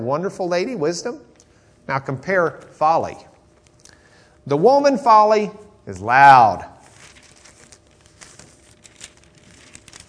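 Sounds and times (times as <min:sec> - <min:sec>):
speech: 0:00.0 - 0:03.3, 0:04.4 - 0:06.7
pages of a torn-up Bible rustling: 0:06.8 - 0:10.0.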